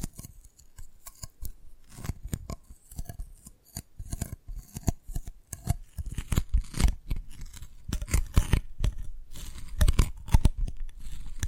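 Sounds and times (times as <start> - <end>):
Dalgona candy tapped and cracked: 0.0 - 11.4.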